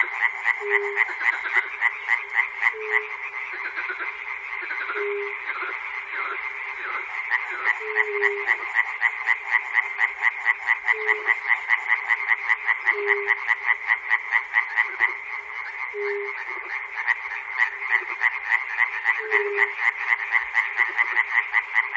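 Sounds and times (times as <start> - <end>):
frog chorus at Chernobyl: 0.0 - 21.9.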